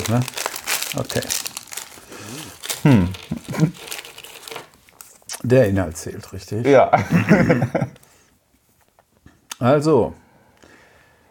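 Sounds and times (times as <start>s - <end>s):
crinkly plastic fortune cookie wrapper rustling and crackling: 0.0s - 5.7s
speech: 0.1s - 1.5s, 2.8s - 3.9s, 5.4s - 8.0s, 9.6s - 10.2s.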